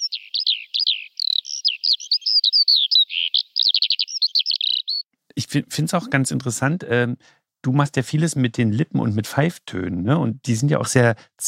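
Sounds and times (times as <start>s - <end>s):
small bird singing: 0.0s - 5.1s
speech: 5.5s - 11.4s.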